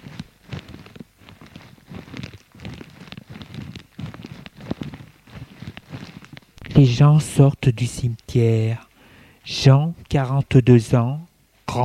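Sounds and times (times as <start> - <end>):
footsteps walking on dry dead autumn leaves: 0.0 - 6.9
speech: 6.8 - 11.8.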